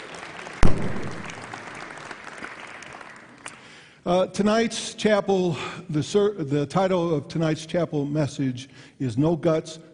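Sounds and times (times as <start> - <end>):
sharp loud clap-like hit: 0.0 - 3.7
speech: 4.0 - 9.9.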